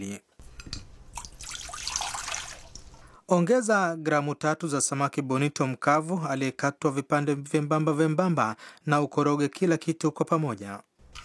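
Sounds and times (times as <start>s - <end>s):
speech: 0.0s - 0.8s, 3.3s - 10.9s
soy sauce, sugar and water pouring into a pot: 0.4s - 3.2s.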